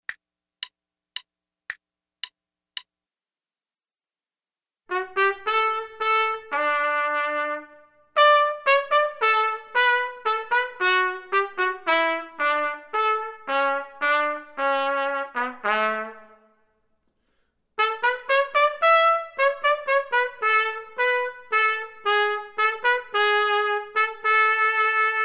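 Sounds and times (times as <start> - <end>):
trumpet: 4.9 - 16.6, 17.8 - 25.2.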